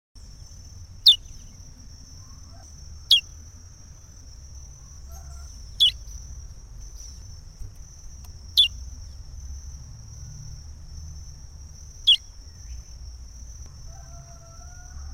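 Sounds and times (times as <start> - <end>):
chestnut-bellied seed finch singing: 0.4 - 3.4, 4.8 - 6.2, 6.8 - 9.3, 12.0 - 12.9.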